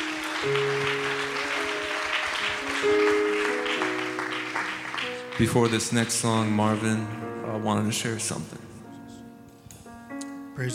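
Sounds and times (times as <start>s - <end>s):
audience clapping: 0.0s - 6.8s
keyboard or organ chords: 0.0s - 10.7s
speech: 0.4s - 0.8s, 5.4s - 8.6s, 10.6s - 10.7s.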